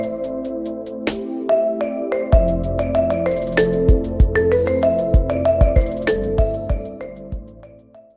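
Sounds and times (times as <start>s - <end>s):
marimba ringtone remix: 1.5s - 7.4s.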